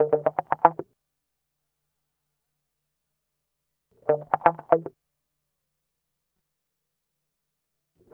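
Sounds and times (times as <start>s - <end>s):
guitar: 0.0s - 0.8s, 4.1s - 4.9s.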